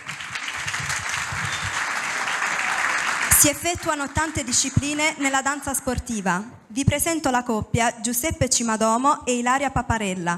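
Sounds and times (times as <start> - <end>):
audience applause: 0.0 - 5.1
speech: 3.4 - 10.3.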